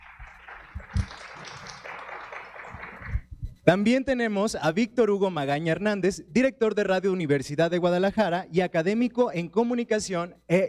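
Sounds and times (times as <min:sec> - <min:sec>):
audience clapping: 0:00.0 - 0:03.3
speech: 0:03.7 - 0:10.6.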